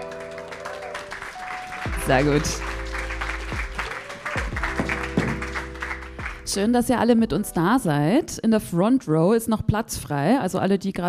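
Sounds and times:
audience applause: 0.0 - 6.5
speech: 2.1 - 2.7, 6.5 - 11.0.

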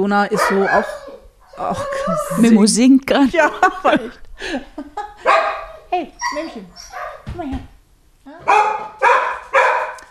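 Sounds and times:
speech: 0.0 - 1.0, 1.6 - 7.7, 8.3 - 8.9
dog barking: 0.3 - 1.0, 5.2 - 7.3, 8.4 - 10.0
laughter: 1.6 - 5.3.

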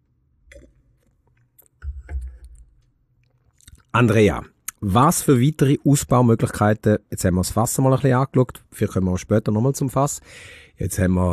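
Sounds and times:
person sipping wine: 0.5 - 3.9
speech: 3.9 - 11.3.

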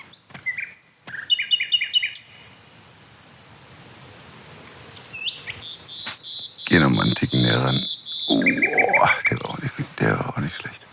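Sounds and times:
male songbird singing: 0.0 - 2.6, 5.0 - 10.9
speech: 7.4 - 8.8, 9.8 - 10.9.

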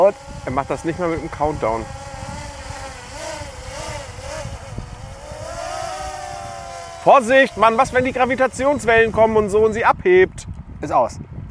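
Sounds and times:
speech: 0.0 - 2.0, 7.0 - 11.3
small drone propellers buzzing while landing: 0.0 - 10.0.

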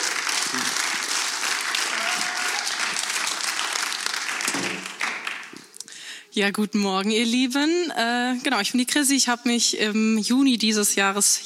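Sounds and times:
audience clapping: 0.0 - 5.8
speech: 6.4 - 11.4.

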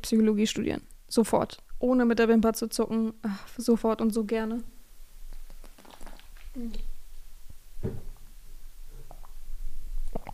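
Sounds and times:
speech: 0.0 - 4.7, 6.6 - 6.9
person taking a drink: 5.4 - 7.0, 8.9 - 10.3.

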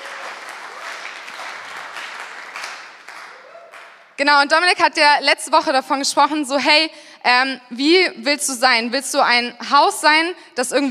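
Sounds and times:
audience applause: 0.0 - 4.2
speech: 4.2 - 10.8.

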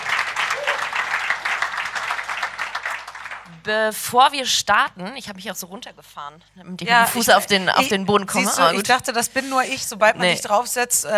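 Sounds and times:
audience applause: 0.0 - 3.7
speech: 3.6 - 11.1.

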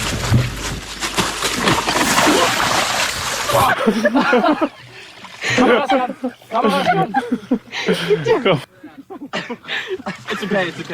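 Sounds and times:
big wet splash into water: 0.2 - 5.6
laughter: 2.0 - 10.9.

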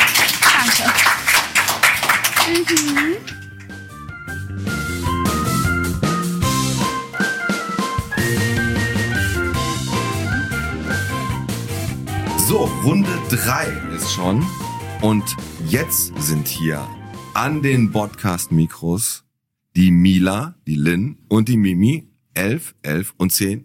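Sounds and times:
audience applause: 0.0 - 3.8
upbeat music: 0.0 - 18.8
speech: 2.5 - 3.4, 12.6 - 19.2, 19.8 - 23.6.

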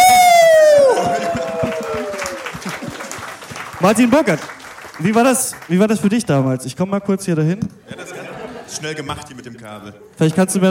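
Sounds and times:
live audience applauding: 0.0 - 6.0
laughter: 1.0 - 3.2, 7.8 - 10.2
speech: 3.8 - 8.0, 8.7 - 10.7.

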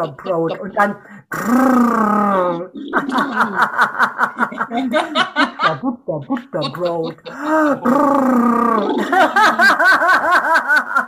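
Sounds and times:
laughter: 0.0 - 0.9, 2.2 - 11.0
lip trill imitating a horse snorting: 0.0 - 3.6, 6.4 - 9.3
rhythmic vocal pulses: 0.0 - 3.8, 5.8 - 9.6
speech: 0.0 - 11.0.

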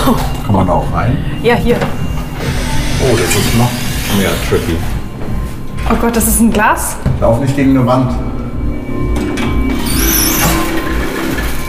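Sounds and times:
squeaking door needing lubrication: 0.0 - 5.2, 8.9 - 11.6
speech: 0.1 - 2.0, 3.0 - 4.9, 5.9 - 8.3.

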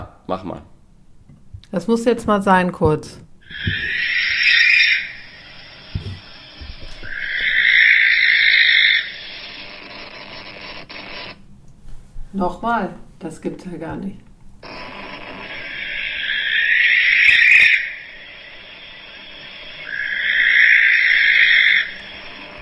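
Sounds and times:
speech: 0.3 - 0.7, 1.7 - 4.3, 12.4 - 14.3
recording of a bird's shrill scream: 3.4 - 9.6, 14.8 - 22.5.

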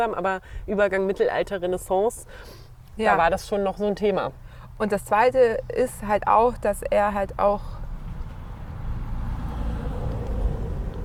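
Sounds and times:
speech: 0.0 - 7.8
road noise: 0.0 - 11.0
postal delivery vehicle engine rumble driving past: 4.2 - 11.0.

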